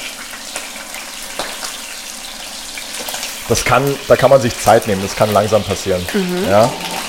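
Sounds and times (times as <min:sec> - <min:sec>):
meat searing in hot oil: 0:00.0 - 0:07.0
speech: 0:03.5 - 0:07.0.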